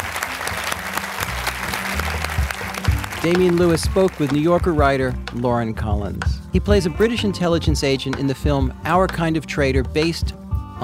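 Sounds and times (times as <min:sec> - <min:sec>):
audience applause: 0:00.0 - 0:04.7
speech: 0:03.2 - 0:10.8.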